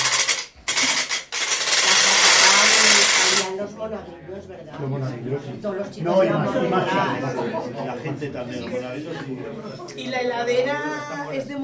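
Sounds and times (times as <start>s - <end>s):
wooden ratchet noisemaker carraca from Muel rattling: 0.0s - 3.5s
speech: 3.8s - 11.6s
laughter: 6.0s - 10.3s.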